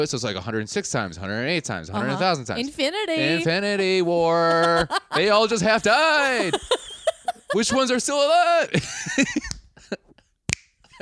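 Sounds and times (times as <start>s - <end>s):
speech: 0.0s - 6.9s, 7.5s - 9.5s
murmured voices: 2.0s - 6.7s
laughter: 4.2s - 10.1s
several people snapping their fingers in unison: 10.5s - 10.8s.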